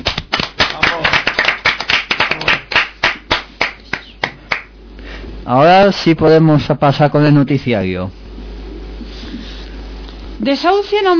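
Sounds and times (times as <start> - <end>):
applause from a small group: 0.0 - 4.7
speech: 5.5 - 8.2, 10.4 - 11.1.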